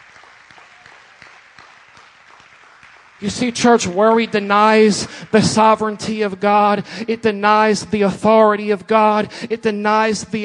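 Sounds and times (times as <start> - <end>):
audience applause: 0.0 - 5.8
speech: 3.2 - 10.4.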